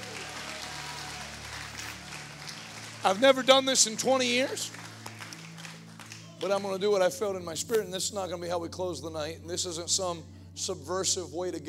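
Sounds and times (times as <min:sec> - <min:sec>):
audience applause: 0:00.0 - 0:06.5
speech: 0:03.0 - 0:04.9, 0:06.4 - 0:11.6.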